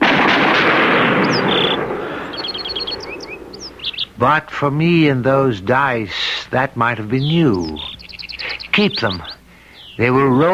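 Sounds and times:
firing squad gunfire volley: 0:00.0 - 0:03.8
high bird chirps: 0:01.0 - 0:04.2, 0:07.1 - 0:10.5
speech: 0:04.2 - 0:07.9, 0:08.8 - 0:09.3, 0:10.0 - 0:10.5.

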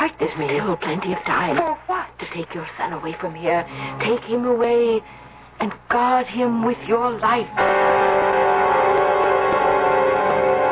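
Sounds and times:
speech: 0:00.1 - 0:08.2
foghorn: 0:07.6 - 0:10.7.

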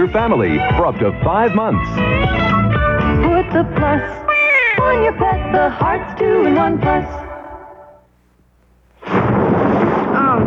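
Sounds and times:
speech: 0:00.0 - 0:07.3
thunderstorm rain: 0:09.1 - 0:10.4.

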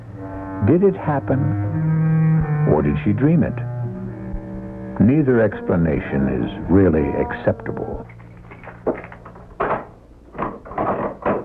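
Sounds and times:
speech: 0:00.2 - 0:01.6, 0:02.7 - 0:03.7, 0:05.0 - 0:08.1
door being unlocked with keys: 0:08.0 - 0:11.4
door pushed open with thump and rustling rattle: 0:08.5 - 0:11.4.

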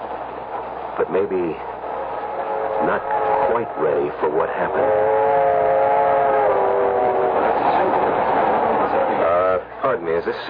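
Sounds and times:
passenger train running on rails: 0:00.0 - 0:10.4
speech: 0:01.0 - 0:01.7, 0:02.8 - 0:05.7, 0:09.8 - 0:10.4
sustained horn-like tone: 0:01.8 - 0:09.7.

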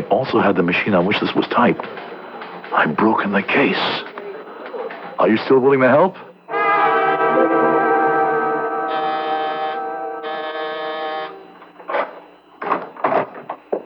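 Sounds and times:
speech: 0:00.0 - 0:02.1, 0:02.7 - 0:04.1, 0:05.2 - 0:06.3
electric doorbell buzzing: 0:06.5 - 0:11.9.

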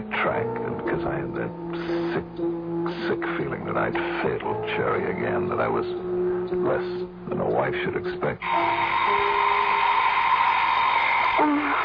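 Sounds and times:
speech: 0:00.2 - 0:09.2, 0:11.4 - 0:11.8
alarm clock buzzing: 0:08.4 - 0:11.8.

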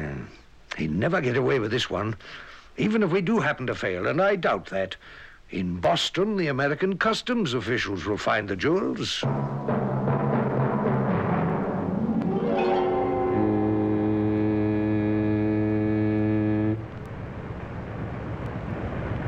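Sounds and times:
speech: 0:00.8 - 0:09.8
constant low rumble: 0:09.3 - 0:19.2
foghorn blast: 0:12.1 - 0:17.0.

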